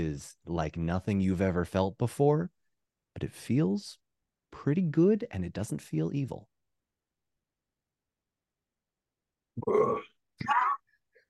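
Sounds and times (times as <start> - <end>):
speech: 0.0 - 2.6, 3.2 - 6.5, 9.6 - 10.6
person making guttural throat-clearing roar: 9.6 - 10.8.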